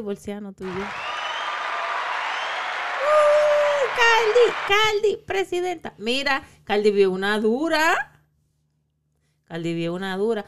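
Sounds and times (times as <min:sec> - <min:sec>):
speech: 0:00.0 - 0:01.1, 0:04.0 - 0:08.1, 0:09.5 - 0:10.4
applause: 0:00.6 - 0:05.0.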